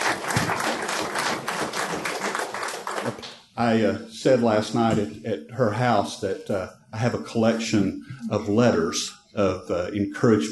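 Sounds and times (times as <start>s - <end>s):
crowd applauding: 0.0s - 3.4s
speech: 3.0s - 10.5s.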